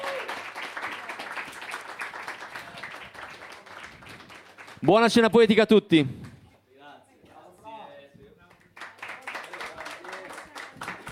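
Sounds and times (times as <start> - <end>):
audience applauding a poetry reader at a poetry dinner evening: 0.0 - 5.4, 8.4 - 11.0
speech: 4.8 - 6.2.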